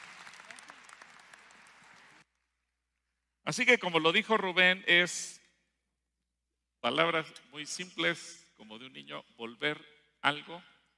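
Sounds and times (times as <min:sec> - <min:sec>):
audience applause: 0:00.0 - 0:02.2
speech: 0:03.5 - 0:05.4, 0:06.8 - 0:10.7.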